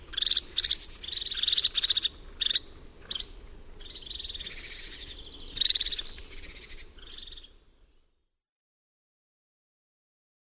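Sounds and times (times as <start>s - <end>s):
crested tit: 0.0s - 8.2s.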